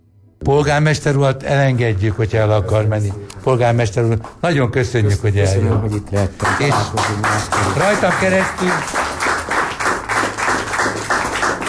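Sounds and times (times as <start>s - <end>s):
speech: 0.5s - 9.0s
loud clapping: 6.1s - 11.6s.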